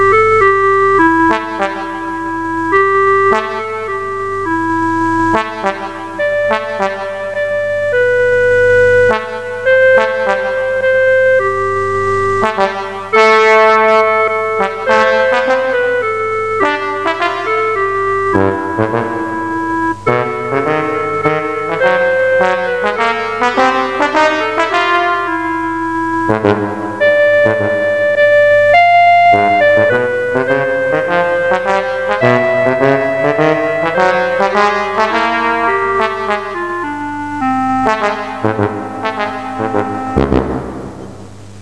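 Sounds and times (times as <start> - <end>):
trombone: 0.1 - 11.5, 12.3 - 41.2.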